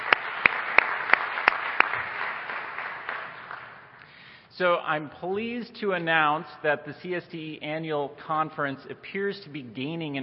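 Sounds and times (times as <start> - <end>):
audience applause: 0.0 - 3.9
sharp louder claps: 0.0 - 4.2
speech: 4.6 - 10.2.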